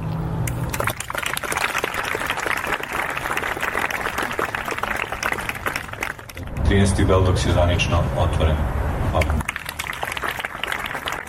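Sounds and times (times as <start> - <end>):
audience applause opening the thirteenth Beldocs festival in Belgrade: 0.7 - 6.4, 9.3 - 11.2
speech: 6.7 - 9.4.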